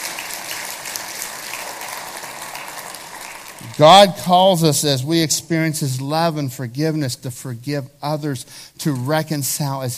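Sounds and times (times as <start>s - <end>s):
audience clapping: 0.0s - 4.4s
speech: 3.7s - 9.9s.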